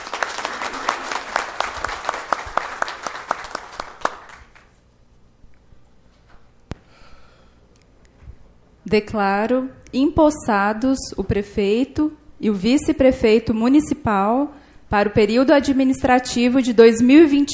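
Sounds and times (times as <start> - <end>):
crowd applauding: 0.0 - 4.8
speech: 8.9 - 17.5.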